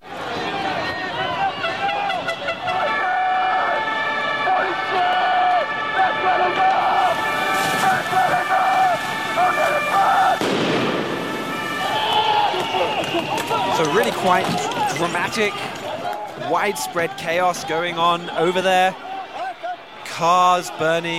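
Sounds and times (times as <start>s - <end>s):
sirens wailing: 0.0s - 21.1s
street riot crowd shouting: 0.0s - 21.1s
explosion in a street riot: 10.4s - 11.6s
speech: 14.2s - 15.8s, 16.4s - 19.0s, 20.2s - 21.1s.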